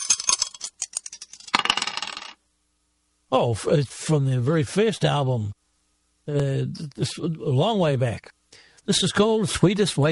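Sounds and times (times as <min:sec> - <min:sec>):
dice being thrown and rolling: 0:00.0 - 0:02.4
speech: 0:03.3 - 0:05.6, 0:06.3 - 0:10.1.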